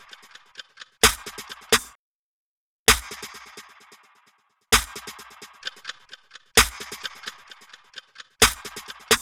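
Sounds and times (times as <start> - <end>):
snare drum: 1.0 - 2.0, 2.9 - 3.6, 4.8 - 9.1.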